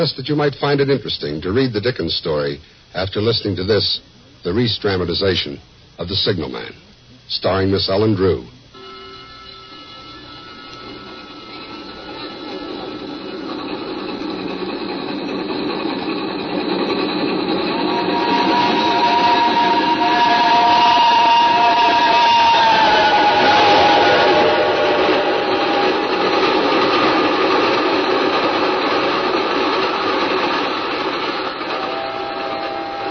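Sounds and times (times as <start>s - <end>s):
speech: 0.0s - 8.6s
high screeching tone: 8.7s - 30.7s
train passing into a tunnel: 8.8s - 33.0s.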